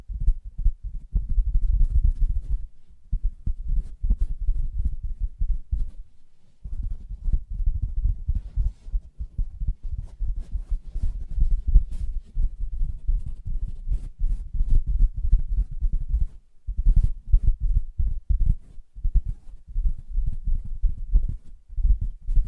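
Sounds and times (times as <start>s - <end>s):
tapping and scratching on a fabric surface: 0.0s - 22.4s.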